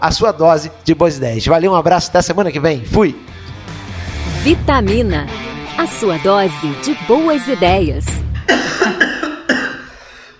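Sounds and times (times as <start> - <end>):
speech: 0.0 - 3.4, 4.4 - 8.6
person coughing after choking: 8.4 - 10.1.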